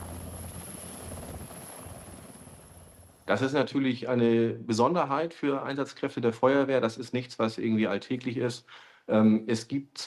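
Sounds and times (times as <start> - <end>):
Bundeswehr military helicopter flying: 0.0 - 3.4
speech: 3.3 - 10.0.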